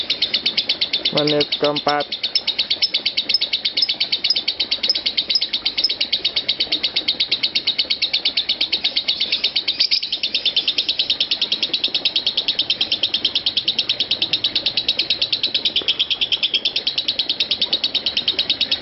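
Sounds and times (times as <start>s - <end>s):
lovebird chirping: 0.0s - 18.8s.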